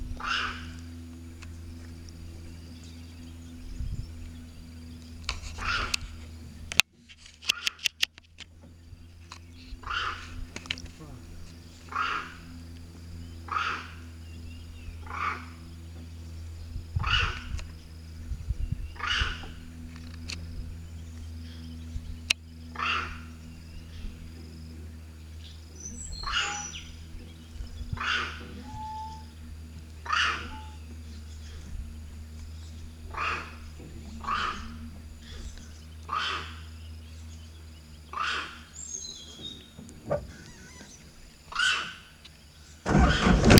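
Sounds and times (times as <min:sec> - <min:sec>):
steady low electrical hum: 0:00.0 - 0:43.5
monkey barking: 0:00.2 - 0:00.8, 0:05.5 - 0:06.2, 0:09.8 - 0:10.5, 0:11.8 - 0:12.6, 0:13.4 - 0:14.2, 0:15.0 - 0:15.6, 0:17.0 - 0:17.6, 0:19.0 - 0:19.5, 0:22.7 - 0:23.4, 0:25.8 - 0:27.0, 0:27.9 - 0:29.4, 0:30.0 - 0:31.0, 0:33.1 - 0:35.4, 0:36.0 - 0:36.8, 0:38.0 - 0:38.8, 0:40.3 - 0:42.2.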